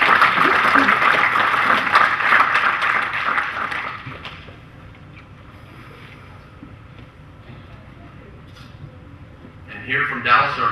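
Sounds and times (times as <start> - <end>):
audience applause: 0.0 - 4.5.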